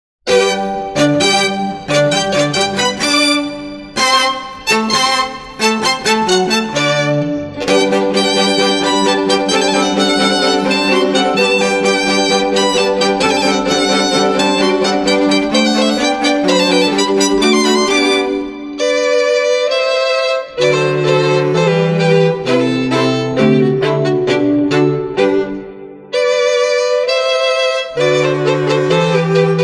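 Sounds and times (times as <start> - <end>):
string serenade: 0.3 - 29.6.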